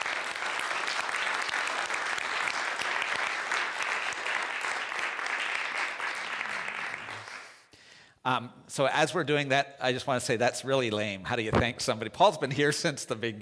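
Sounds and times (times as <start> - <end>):
audience applause: 0.0 - 7.7
speech: 8.2 - 13.4.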